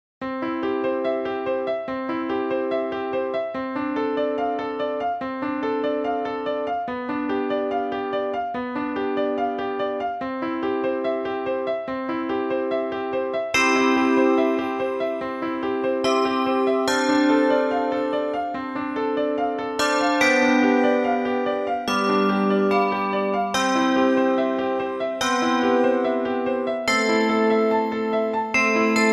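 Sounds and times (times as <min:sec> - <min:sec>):
piano: 0:00.2 - 0:29.1
small bells: 0:13.6 - 0:29.1.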